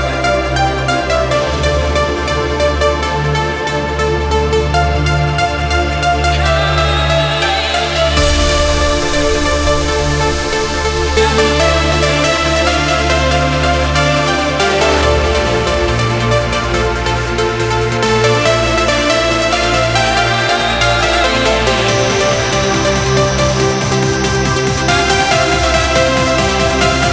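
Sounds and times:
complete music mix in D minor: 0.0s - 27.1s.

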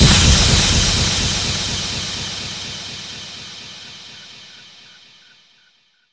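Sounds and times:
downlifter effect: 0.0s - 4.3s.

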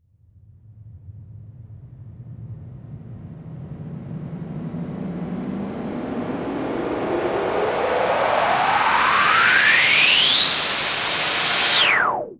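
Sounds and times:
uplifter riser: 3.8s - 12.3s.

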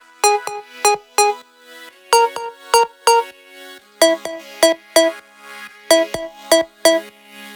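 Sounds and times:
127 BPM melody: 0.2s - 1.4s, 2.2s - 3.3s, 4.0s - 5.2s, 5.9s - 7.0s.

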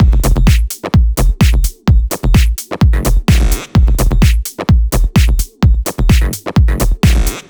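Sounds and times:
air raid drum kit beat: 0.0s - 7.4s.

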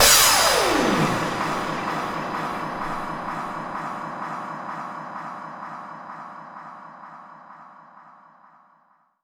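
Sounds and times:
downlifter effect: 0.0s - 3.8s.

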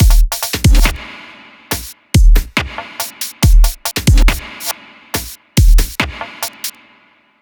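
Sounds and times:
dubstep drum loop: 0.0s - 7.0s.

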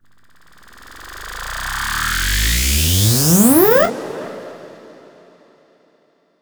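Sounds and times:
uplifter riser: 0.4s - 5.0s.

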